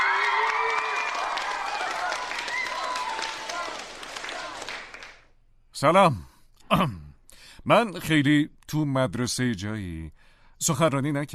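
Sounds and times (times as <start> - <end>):
crowd applauding and cheering: 0.0 - 5.3
speech: 5.8 - 7.0, 7.6 - 11.3.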